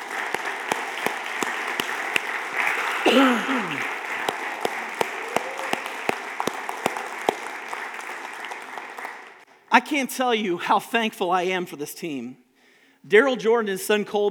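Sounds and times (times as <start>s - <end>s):
audience applauding: 0.0s - 9.5s
speech: 3.0s - 3.9s, 9.8s - 12.4s, 13.0s - 14.2s.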